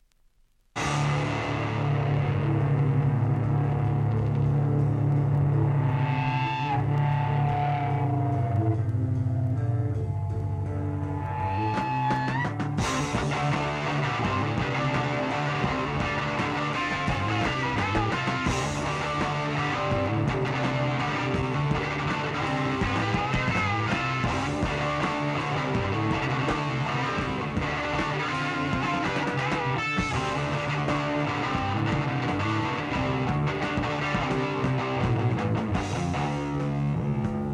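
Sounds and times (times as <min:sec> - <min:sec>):
instrumental music: 0:00.8 - 0:37.5.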